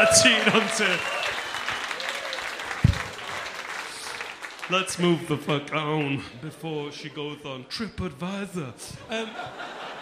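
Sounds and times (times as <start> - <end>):
speech: 0.0 - 1.3, 4.7 - 9.8
audience applause: 0.0 - 5.4
laughter: 9.0 - 10.0.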